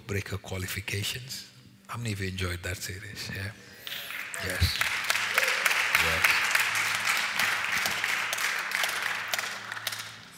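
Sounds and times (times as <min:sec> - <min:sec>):
speech: 0:00.1 - 0:05.0, 0:06.0 - 0:06.4
audience clapping hands: 0:03.8 - 0:10.3.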